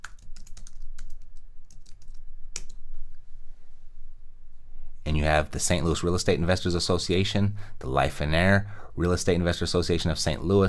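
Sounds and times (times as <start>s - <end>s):
typing on a computer keyboard for a Google search: 0.0s - 2.8s
speech: 5.1s - 10.6s.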